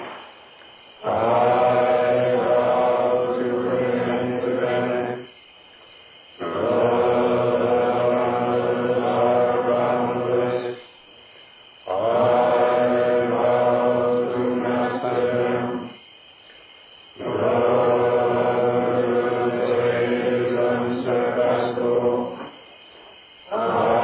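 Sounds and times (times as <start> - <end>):
chanting: 0.9 - 16.1, 17.1 - 24.0.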